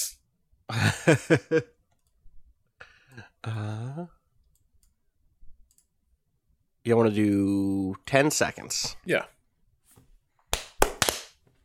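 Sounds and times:
speech: 0:00.7 - 0:01.8, 0:03.4 - 0:04.2, 0:06.8 - 0:09.4
single hand clap for video sync: 0:10.5 - 0:11.4.

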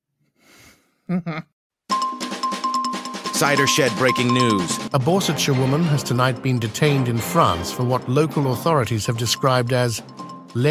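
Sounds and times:
speech: 0:01.1 - 0:01.5, 0:03.4 - 0:10.6
bells ringing: 0:01.9 - 0:06.3, 0:09.0 - 0:10.6.

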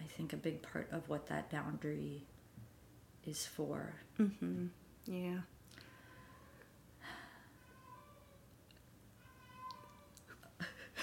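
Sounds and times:
speech: 0:00.1 - 0:02.4, 0:03.2 - 0:05.9
pet cat meowing faintly: 0:07.6 - 0:08.5, 0:09.2 - 0:10.3.

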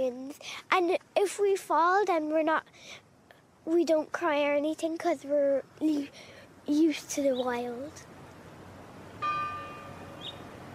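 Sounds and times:
speech: 0:00.0 - 0:03.0, 0:03.6 - 0:08.1
low steady hiss: 0:00.0 - 0:10.7
church bells ringing: 0:09.2 - 0:10.3.

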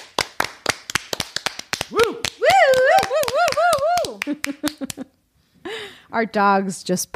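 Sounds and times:
hands clapping: 0:00.0 - 0:05.1
person whooping and cheering: 0:01.9 - 0:04.9
speech: 0:04.4 - 0:05.2, 0:06.1 - 0:07.1.

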